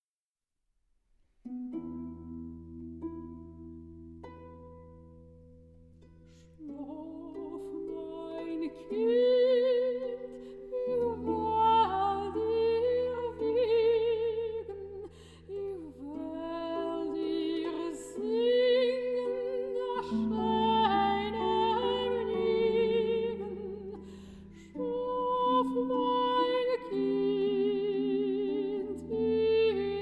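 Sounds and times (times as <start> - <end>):
lullaby: 6.0 - 30.0.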